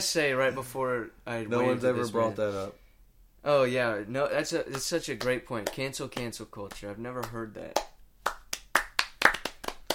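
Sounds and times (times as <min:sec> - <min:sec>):
speech: 0:00.0 - 0:02.8, 0:03.4 - 0:08.4
golf claps, light hand clapping: 0:04.7 - 0:09.9.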